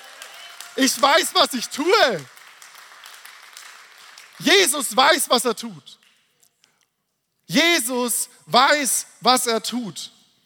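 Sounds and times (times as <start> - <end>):
audience applause: 0.0 - 4.7
speech: 0.8 - 2.4, 4.4 - 6.0, 7.5 - 10.2.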